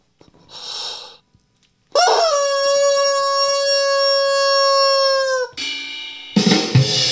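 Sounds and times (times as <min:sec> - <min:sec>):
airy wheezing hisses of a squeezed rubber chicken: 0:00.4 - 0:01.2
rubber chicken toy squealing: 0:02.0 - 0:05.6.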